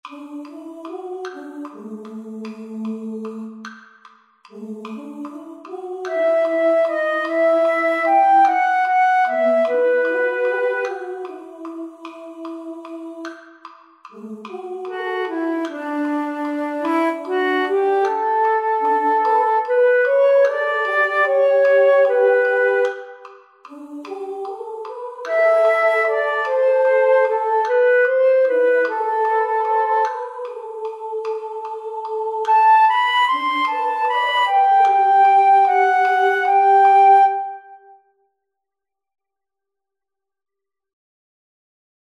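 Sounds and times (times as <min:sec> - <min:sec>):
flute: 0:04.6 - 0:13.4, 0:14.2 - 0:38.2.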